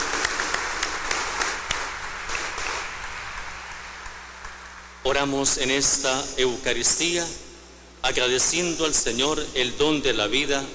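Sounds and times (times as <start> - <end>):
applause: 0.0 - 4.9
speech: 5.1 - 7.4, 8.0 - 10.7.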